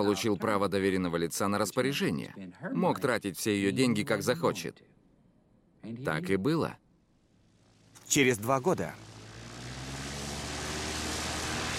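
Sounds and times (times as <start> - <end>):
speech: 0.0 - 5.0, 5.8 - 6.8, 8.1 - 9.1
single-engine propeller airplane coming in to land toward a hangar: 7.5 - 11.7.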